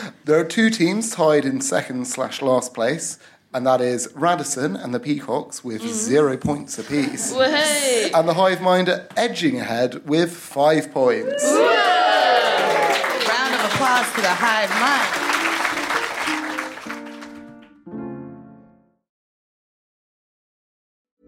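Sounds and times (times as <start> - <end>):
speech: 0.3 - 12.1, 13.8 - 15.3
whoops and cheers: 11.2 - 13.5
audience applause: 11.3 - 17.7.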